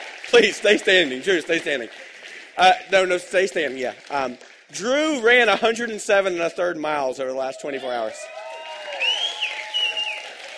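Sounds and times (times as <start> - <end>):
audience clapping: 0.0 - 5.8, 7.8 - 10.5
speech: 0.3 - 8.4.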